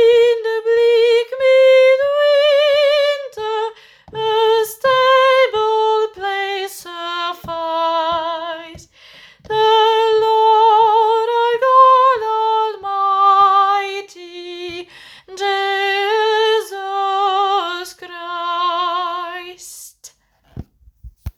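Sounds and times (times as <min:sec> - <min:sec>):
soprano singing a carol: 0:00.0 - 0:20.1.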